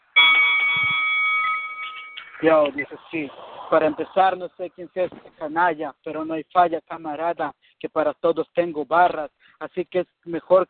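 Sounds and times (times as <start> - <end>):
bell ringing: 0.0 - 3.1
speech: 2.4 - 10.6.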